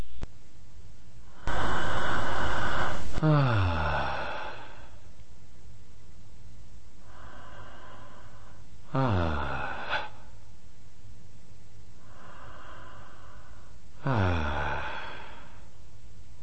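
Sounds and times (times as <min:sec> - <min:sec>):
amplified breathing with wheezy tonal exhale: 0:01.2 - 0:05.1, 0:07.0 - 0:10.5, 0:11.9 - 0:15.8.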